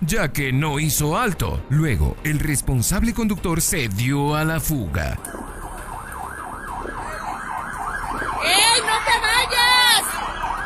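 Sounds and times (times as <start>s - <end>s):
speech: 0.1s - 5.4s
low traffic rumble: 4.3s - 10.6s
fire engine siren as firefighters arrive: 5.2s - 10.6s.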